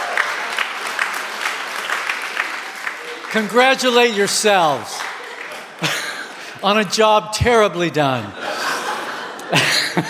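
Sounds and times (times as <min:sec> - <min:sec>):
church congregation applauding: 0:00.0 - 0:08.2
speech: 0:03.3 - 0:05.1, 0:06.6 - 0:08.4, 0:09.5 - 0:10.0
laughter: 0:05.0 - 0:06.6, 0:08.1 - 0:10.0.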